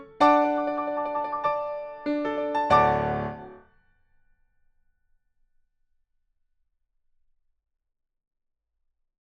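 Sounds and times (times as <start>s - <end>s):
musical accompaniment: 0.2s - 3.6s.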